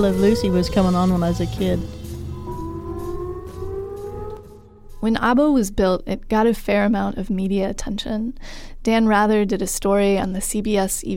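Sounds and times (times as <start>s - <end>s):
speech: 0.0s - 2.0s, 5.0s - 11.1s
air raid siren: 0.0s - 5.5s.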